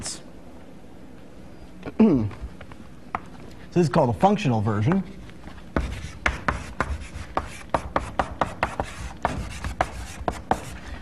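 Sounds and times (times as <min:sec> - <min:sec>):
speech: 0:01.9 - 0:02.4, 0:03.8 - 0:05.2
writing on a board during a lecture: 0:05.7 - 0:10.8.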